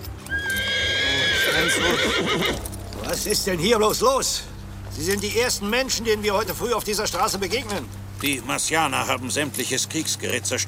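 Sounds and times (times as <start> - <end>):
hooves clip-clopping: 0.0 - 10.6
horse whinnying: 0.2 - 2.8
speech: 1.7 - 10.6.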